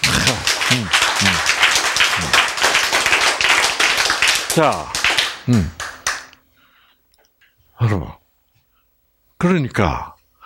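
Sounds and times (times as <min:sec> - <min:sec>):
audience applause: 0:00.0 - 0:06.3
speech: 0:04.6 - 0:05.8, 0:09.4 - 0:10.1.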